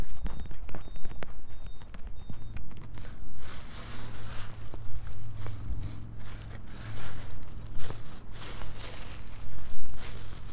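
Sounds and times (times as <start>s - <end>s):
low steady hum: 0.0s - 10.5s
cut dried carrots being tossed and mixed: 2.7s - 10.5s.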